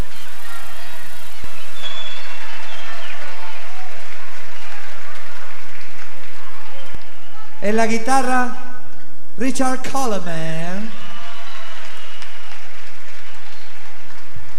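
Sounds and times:
audience applause: 0.0 - 7.6, 10.8 - 14.5
speech: 7.6 - 8.6, 9.4 - 11.0.

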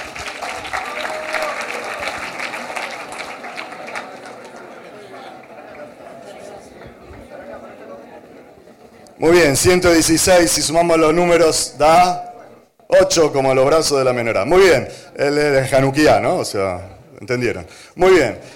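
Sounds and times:
audience applause: 0.0 - 8.0
speech: 9.2 - 12.3, 13.0 - 18.5.

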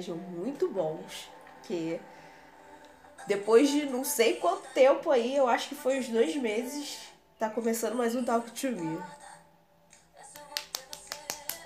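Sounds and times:
speech: 0.0 - 2.2, 3.2 - 9.2
hands clapping: 10.3 - 11.6.

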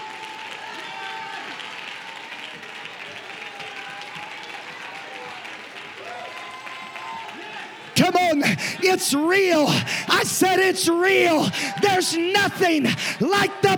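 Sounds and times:
audience applause: 0.0 - 13.7
excited audience voices calling out: 7.5 - 13.7
speech: 8.1 - 13.7.

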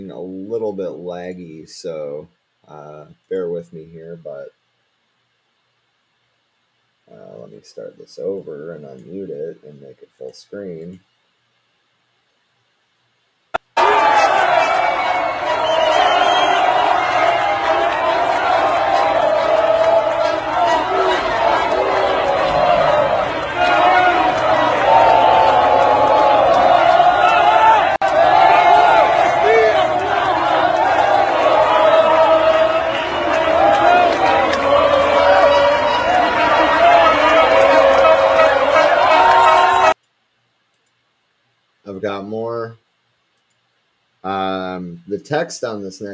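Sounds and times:
speech: 0.0 - 4.6, 7.1 - 11.1, 45.2 - 46.1
massive crowd roaring: 13.6 - 40.0
scattered shouts: 13.8 - 40.0.

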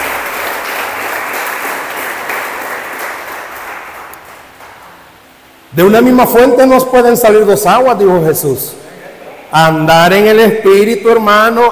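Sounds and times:
audience applause: 0.0 - 4.9
speech: 5.8 - 8.8, 9.5 - 11.7.

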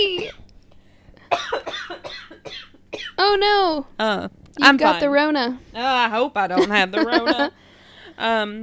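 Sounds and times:
person with asthma coughing: 0.2 - 0.4, 1.3 - 3.2
speech: 3.3 - 8.6
laughter: 6.6 - 7.5.

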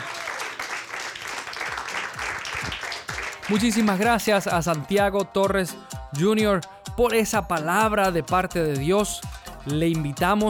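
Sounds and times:
large crowd applause: 0.0 - 4.2
speech: 3.5 - 10.4.

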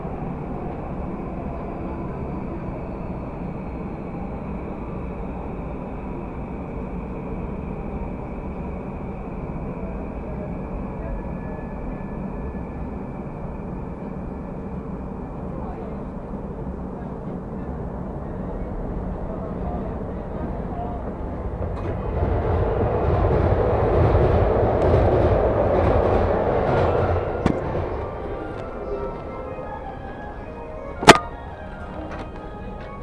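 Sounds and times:
Chuo Line rapid train rumbling: 0.0 - 33.0
sharp click: 31.0 - 31.2.

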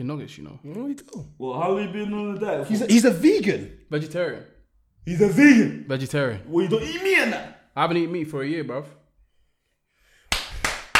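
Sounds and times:
speech: 0.0 - 9.0
hand claps: 10.3 - 10.9.

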